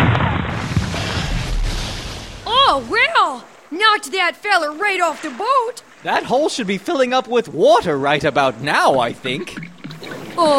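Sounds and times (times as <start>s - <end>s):
elephant gun shot: 0.0s - 2.4s
speech: 2.7s - 9.7s, 10.4s - 10.5s.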